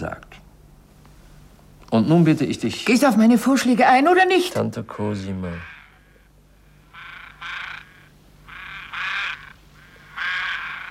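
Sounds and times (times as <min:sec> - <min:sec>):
speech: 0:00.0 - 0:00.3, 0:01.9 - 0:05.8
faint low hum: 0:00.0 - 0:10.8
ravens croaking: 0:05.0 - 0:10.8.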